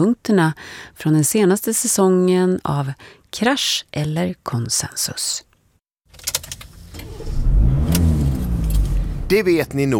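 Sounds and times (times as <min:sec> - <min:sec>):
speech: 0:00.0 - 0:05.5, 0:09.3 - 0:09.9
car driving: 0:06.4 - 0:09.9.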